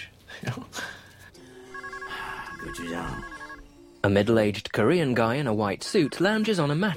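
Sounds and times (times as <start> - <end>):
telephone ringing with a bright electronic trill: 1.4 - 4.1, 5.8 - 6.6
speech: 4.0 - 6.9.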